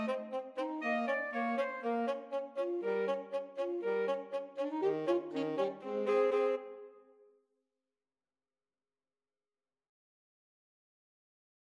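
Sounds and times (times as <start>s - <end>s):
alto saxophone in sax duet: 0.0s - 7.1s.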